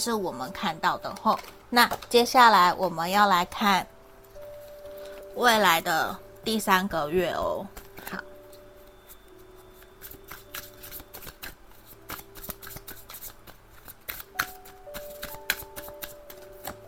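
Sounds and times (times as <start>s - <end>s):
speech: 0.0s - 4.0s, 5.4s - 8.3s
tarot cards being shuffled: 7.7s - 8.2s, 9.1s - 16.8s.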